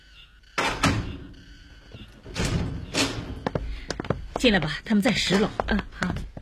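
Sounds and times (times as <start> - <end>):
apartment flat door opening with clunk and rattle: 0.6 - 1.3, 2.2 - 3.6
speech: 4.4 - 6.3.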